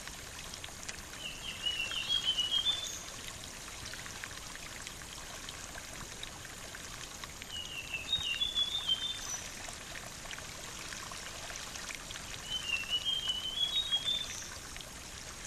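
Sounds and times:
Sulingan bird whistling song: 1.2 - 3.0, 7.5 - 9.4, 12.4 - 14.5.

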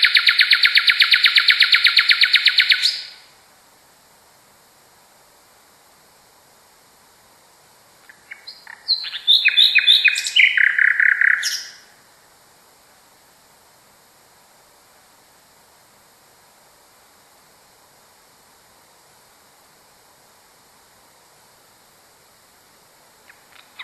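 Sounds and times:
common nightingale singing: 0.0 - 3.3, 8.0 - 12.0, 23.2 - 23.8.

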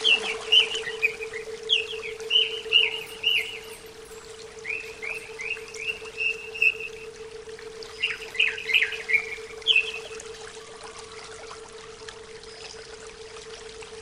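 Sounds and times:
greater green leafbird song: 0.0 - 7.1, 7.8 - 10.3.

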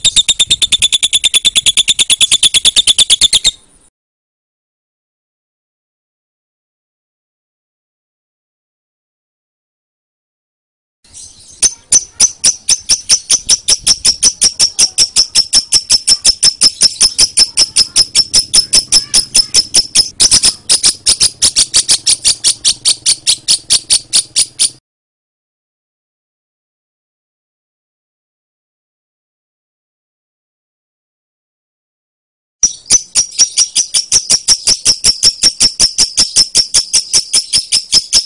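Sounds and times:
lovebird calls: 0.0 - 3.7, 11.1 - 24.8, 32.6 - 38.2.

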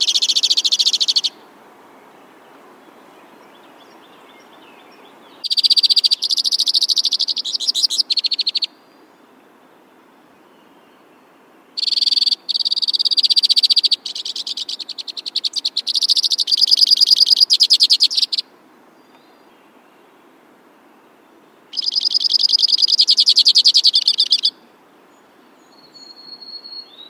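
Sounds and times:
White-winged crossbill trilling: 0.0 - 1.4, 5.4 - 8.8, 11.8 - 18.4, 21.7 - 24.6.

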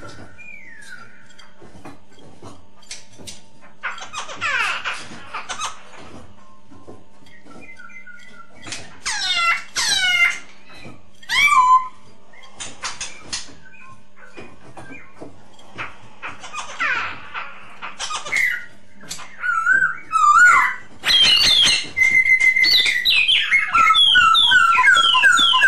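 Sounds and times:
masked laughingthrush whistled lure song: 0.0 - 1.5, 6.4 - 15.3, 18.0 - 25.6.

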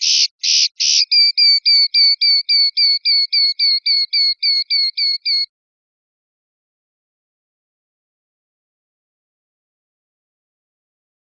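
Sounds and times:
European goldfinch singing: 0.0 - 5.5.

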